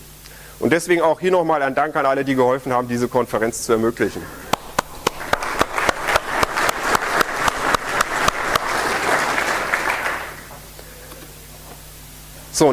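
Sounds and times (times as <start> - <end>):
speech: 0.6 - 4.4, 12.6 - 12.7
audience clapping: 4.4 - 10.8.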